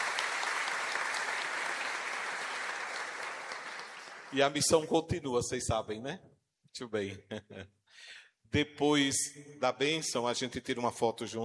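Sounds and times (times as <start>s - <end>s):
audience applause: 0.0s - 4.4s
speech: 4.3s - 11.4s.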